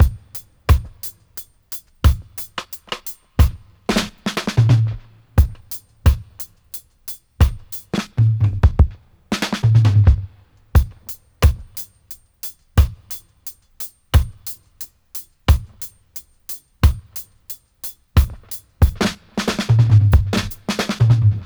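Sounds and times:
dry dub drum loop: 0.0s - 21.4s.

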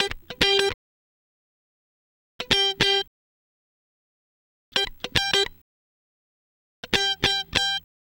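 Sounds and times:
guitar licks: 0.0s - 0.7s, 2.4s - 3.1s, 4.8s - 5.6s, 6.8s - 7.8s.

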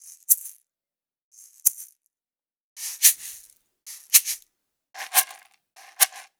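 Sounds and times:
raw percussion shakers: 0.0s - 0.6s, 1.4s - 2.0s, 2.8s - 4.4s, 5.0s - 6.3s.

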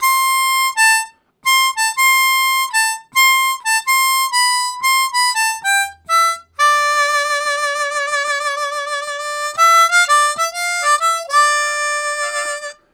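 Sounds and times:
harmonica riffs: 0.0s - 12.9s.

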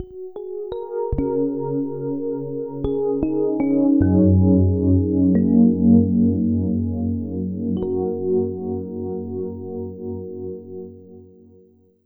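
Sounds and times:
FM synth keys chords: 1.2s - 11.2s.

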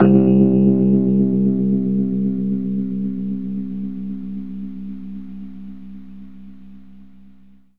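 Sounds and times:
Rhodes electric piano fast in C: 0.0s - 4.6s.

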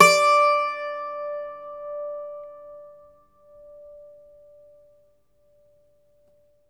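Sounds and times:
Irish old world instruments playing: 0.0s - 1.6s.

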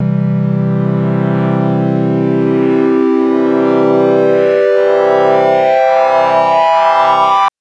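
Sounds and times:
synth triangle wave sweep on C2 major: 0.0s - 7.5s.

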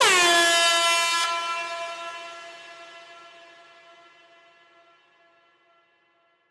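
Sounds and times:
air horn: 0.0s - 4.0s.

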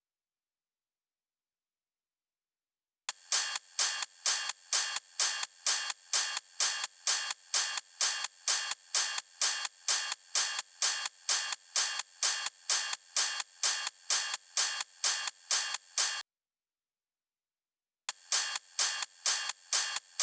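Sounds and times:
128 BPM top loop of drums and percussion: 3.1s - 16.2s, 18.1s - 20.2s.

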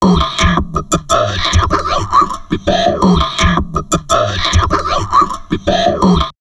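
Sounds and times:
crazy processed drum loops at 160: 0.0s - 6.3s.

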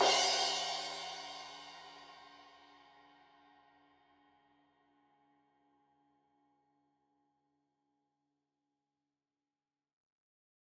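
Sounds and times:
15 inch crash cymbal edge hit: 0.0s - 2.4s.

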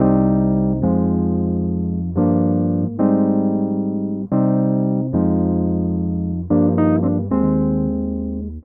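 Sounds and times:
disco Wurlitzer electric piano: 0.0s - 8.6s.

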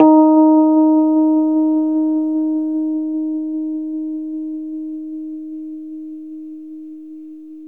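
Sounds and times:
Rhodes 73 electric piano slow in D#: 0.0s - 5.2s.

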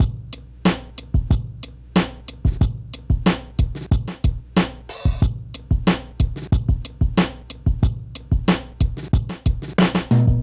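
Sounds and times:
minimal drum loops: 0.0s - 10.4s.

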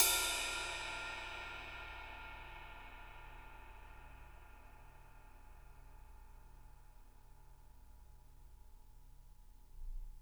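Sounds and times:
ride cymbal: 0.0s - 6.6s.

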